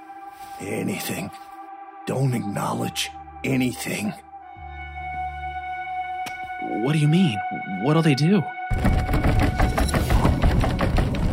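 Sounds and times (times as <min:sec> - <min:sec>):
speech: 0:00.6 - 0:01.5, 0:02.1 - 0:04.3, 0:06.7 - 0:09.2
loud knocking and pounding on a door: 0:08.7 - 0:11.3.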